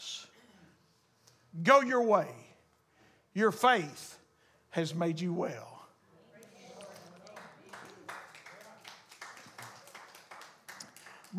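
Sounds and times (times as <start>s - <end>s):
speech: 1.5s - 2.4s, 3.4s - 4.1s, 4.7s - 5.8s
audience clapping in church: 6.8s - 11.3s.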